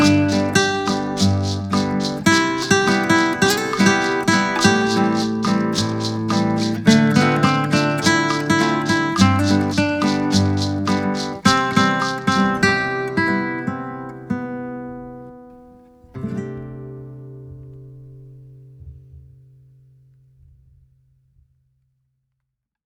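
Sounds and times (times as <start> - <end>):
bossa nova music: 0.0 - 15.8.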